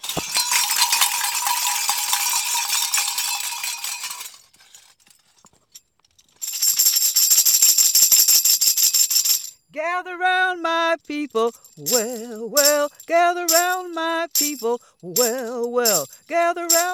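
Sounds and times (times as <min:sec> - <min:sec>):
bells ringing: 0:00.0 - 0:04.4
speech: 0:10.0 - 0:16.9.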